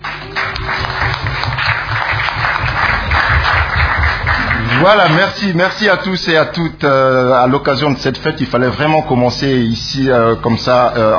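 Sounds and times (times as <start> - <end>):
low hum: 0.0 - 4.8
journalists applauding at a UN press conference: 0.0 - 5.6
speech: 4.8 - 11.1.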